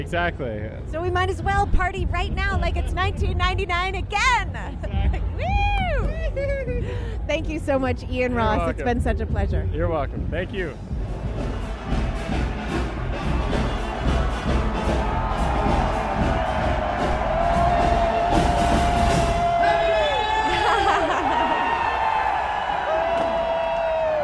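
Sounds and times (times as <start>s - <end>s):
speech: 0.0s - 11.6s
laughter: 4.5s - 7.2s, 20.3s - 22.0s
crowd screaming and cheering at New Year celebration: 11.0s - 24.2s.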